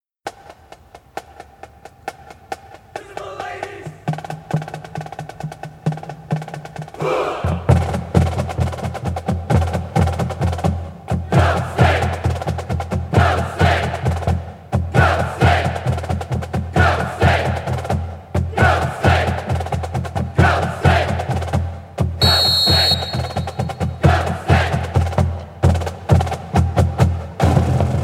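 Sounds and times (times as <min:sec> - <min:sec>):
percussion: 0:00.3 - 0:28.0
fanfare: 0:22.2 - 0:24.6.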